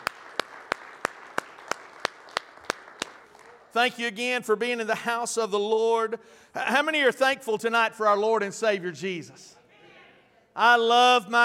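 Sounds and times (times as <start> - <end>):
audience applause: 0.0 - 3.8
speech: 3.7 - 9.6, 10.6 - 11.4.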